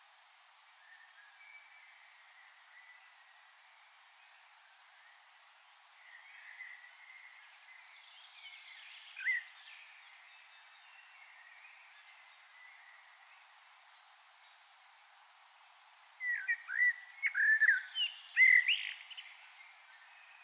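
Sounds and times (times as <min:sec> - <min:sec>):
quiet hiss: 0:00.0 - 0:20.4
common blackbird song: 0:00.8 - 0:14.7, 0:16.2 - 0:20.4.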